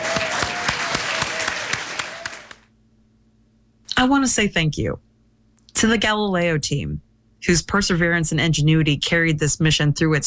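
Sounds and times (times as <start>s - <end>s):
crowd applauding: 0.0s - 2.7s
speech: 4.0s - 5.1s, 5.8s - 10.2s.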